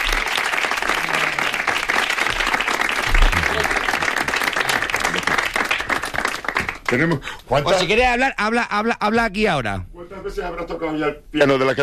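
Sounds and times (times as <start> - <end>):
audience applause in a radio studio: 0.0 - 7.2
speech: 6.9 - 11.8.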